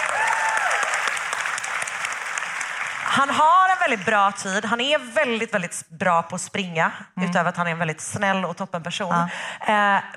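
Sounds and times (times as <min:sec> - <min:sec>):
audience applause: 0:00.0 - 0:04.2
speech: 0:03.2 - 0:10.1.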